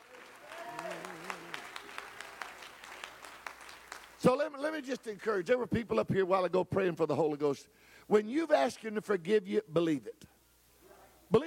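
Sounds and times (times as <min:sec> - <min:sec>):
audience clapping hands: 0:00.0 - 0:05.1
speech: 0:04.2 - 0:10.3.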